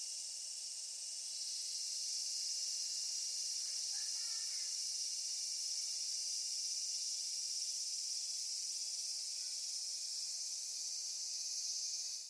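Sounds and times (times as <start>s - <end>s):
Hyalessa maculaticollis cicada in thickets: 0.0s - 12.2s.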